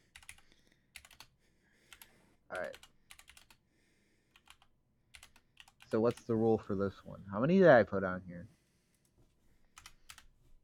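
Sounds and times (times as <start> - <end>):
typing on a computer keyboard: 0.0 - 3.6, 4.3 - 6.4, 9.7 - 10.3
speech: 2.5 - 2.9, 5.9 - 8.6.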